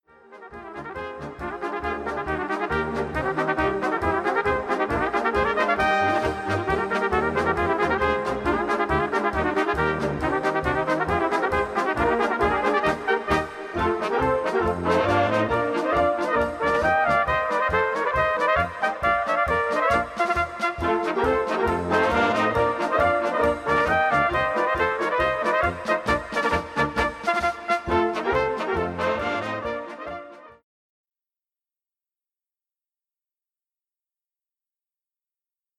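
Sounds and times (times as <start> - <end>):
cheerful trumpet music: 0.0 - 30.6.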